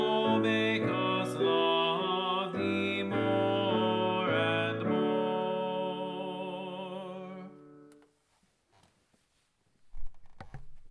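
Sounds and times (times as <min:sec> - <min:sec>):
tenor singing: 0:00.0 - 0:07.9.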